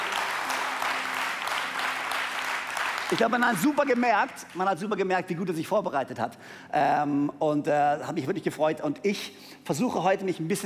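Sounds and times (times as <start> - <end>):
audience applause: 0.0 - 4.9
speech: 3.1 - 10.6.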